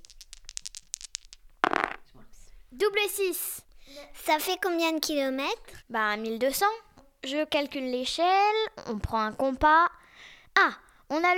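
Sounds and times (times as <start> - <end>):
dice being thrown: 0.0 - 2.1
speech: 2.7 - 10.0, 10.6 - 11.3.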